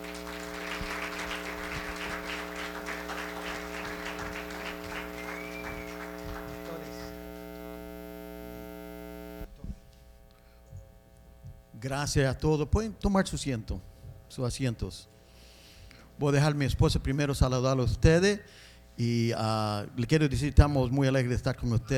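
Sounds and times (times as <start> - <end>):
audience applause: 0.0 - 7.4
speech: 11.8 - 15.1, 16.2 - 21.9.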